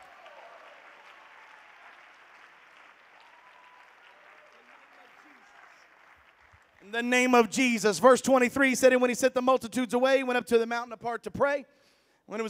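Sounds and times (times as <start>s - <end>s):
audience clapping hands: 0.0s - 7.6s
speech: 6.8s - 12.4s.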